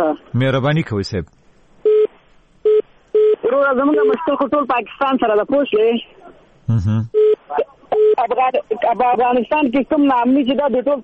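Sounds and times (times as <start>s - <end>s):
speech: 0.0s - 1.4s, 3.6s - 11.0s
telephone line beeps on a call cut off during a radio call-in show: 1.8s - 3.4s, 7.2s - 8.3s
short bursts of voice on a telephone line: 6.7s - 7.1s.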